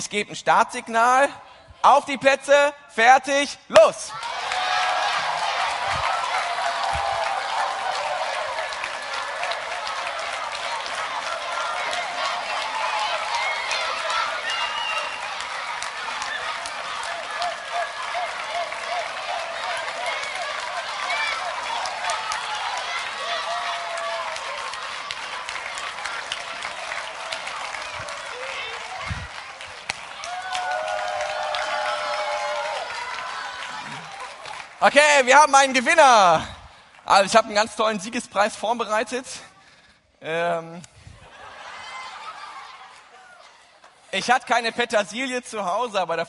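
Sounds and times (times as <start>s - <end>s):
speech: 0.0s - 4.5s, 34.9s - 36.5s, 37.1s - 39.5s, 40.2s - 40.9s, 44.1s - 46.2s
audience cheering children during a race: 3.8s - 36.4s
laughter: 5.2s - 7.8s, 33.6s - 34.5s, 40.8s - 43.8s.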